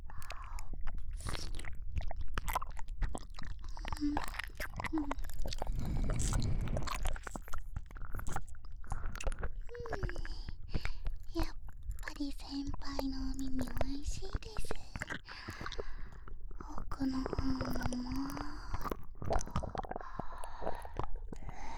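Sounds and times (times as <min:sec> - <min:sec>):
gentle nibbling bites and wet ASMR mouth sounds: 0:00.0 - 0:21.7.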